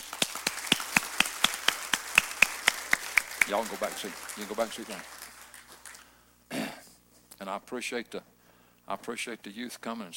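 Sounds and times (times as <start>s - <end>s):
group clapping in rhythm: 0.0s - 6.2s
speech: 3.5s - 5.2s, 7.4s - 8.3s, 8.9s - 10.1s.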